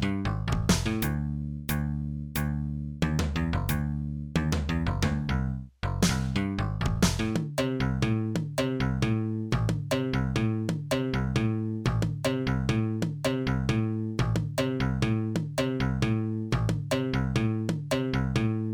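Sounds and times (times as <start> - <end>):
bass drums: 0.0 - 18.7.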